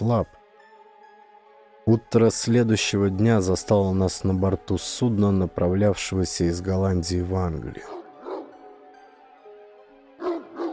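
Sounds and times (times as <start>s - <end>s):
speech: 0.0s - 0.4s, 1.9s - 8.0s
huge dog barking: 7.9s - 8.6s, 10.2s - 10.7s.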